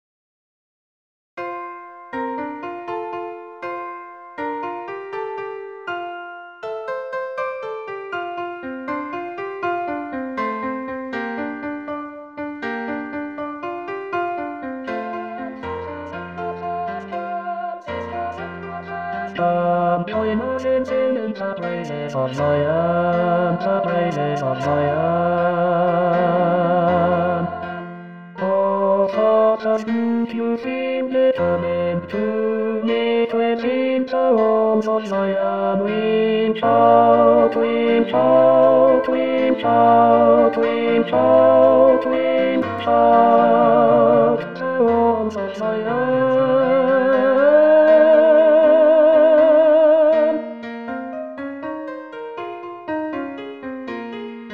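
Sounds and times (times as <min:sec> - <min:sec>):
tenor voice singing: 0:14.9 - 0:50.5.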